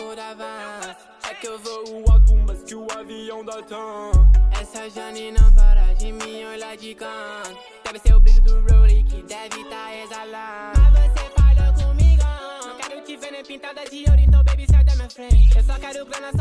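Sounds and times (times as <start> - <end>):
deep bass: 2.1 - 2.6, 4.2 - 4.7, 5.4 - 6.2, 8.1 - 9.2, 10.8 - 12.4, 14.1 - 16.4.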